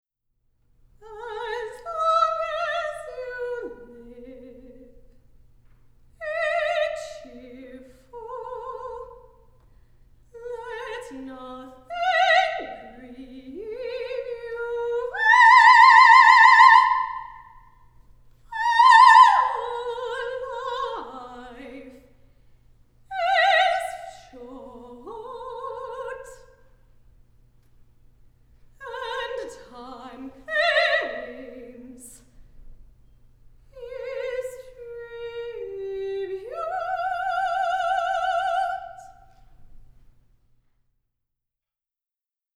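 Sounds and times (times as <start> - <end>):
soprano singing alone: 1.0 - 5.2, 6.2 - 9.6, 10.3 - 17.7, 18.5 - 22.2, 23.1 - 26.7, 28.8 - 32.4, 33.7 - 39.4.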